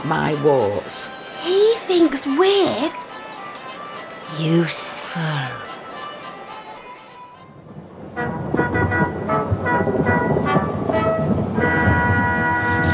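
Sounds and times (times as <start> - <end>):
speech: 0.0 - 3.0, 4.3 - 5.7
thunder: 7.6 - 12.9.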